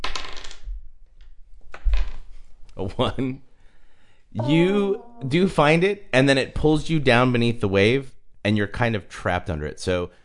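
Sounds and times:
dice rattling on a hard surface: 0.0s - 0.8s
speech: 2.8s - 3.5s, 4.3s - 10.2s.

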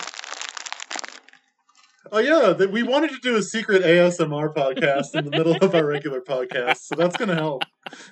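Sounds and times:
crunching crisp banana chips into the mic: 0.0s - 2.0s
speech: 2.1s - 8.1s
laughter: 2.2s - 8.1s.

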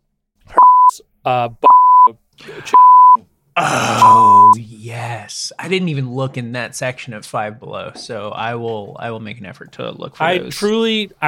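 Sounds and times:
censor bleep tone: 0.6s - 1.0s, 1.7s - 2.1s, 2.8s - 3.2s, 4.0s - 4.6s
speech: 1.0s - 2.8s, 3.6s - 11.2s.

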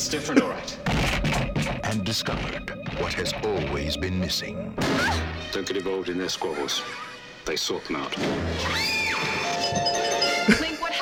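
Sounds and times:
speech: 0.0s - 9.8s
doorbell ringing: 9.2s - 10.9s.

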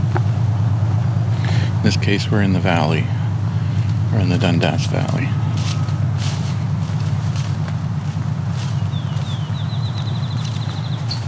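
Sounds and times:
steady low rumble: 0.0s - 11.2s
speech: 1.8s - 3.2s, 4.2s - 5.8s
faint crunching steps: 3.6s - 11.2s
field sparrow singing accelerating call: 8.6s - 11.2s.

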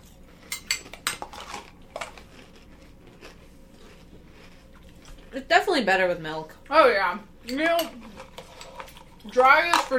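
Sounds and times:
speech: 5.4s - 8.1s, 9.2s - 9.9s
spoon clinking against a bowl of cereal with raisins and milk: 7.4s - 8.0s.

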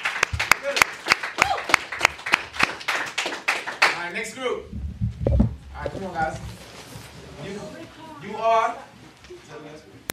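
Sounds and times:
audience clapping: 0.0s - 4.3s
speech: 5.8s - 6.5s, 7.4s - 10.0s.

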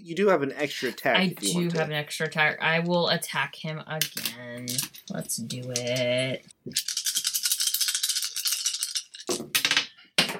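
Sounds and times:
speech: 0.0s - 7.0s
dice rattling in a shaking hand or cup: 4.2s - 9.7s
dice clattering onto a hard surface: 6.8s - 9.9s.

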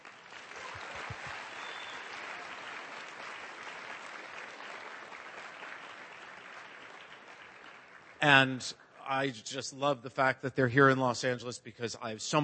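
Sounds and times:
crowd clapping: 0.0s - 9.0s
speech: 8.2s - 12.4s.

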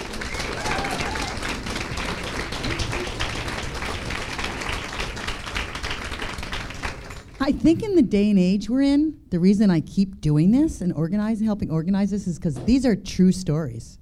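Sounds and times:
audience applause: 0.0s - 7.4s
speech: 7.4s - 14.0s.

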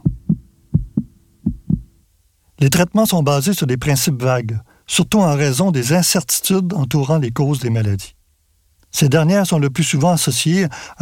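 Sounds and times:
heartbeat pulse at a calm resting pace: 0.0s - 2.0s
speech: 2.6s - 8.2s, 8.9s - 11.0s.

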